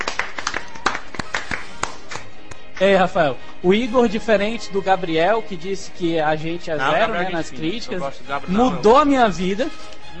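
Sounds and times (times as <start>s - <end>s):
a few people clapping for a guest on a show: 0.0s - 2.8s
speech: 2.8s - 10.1s.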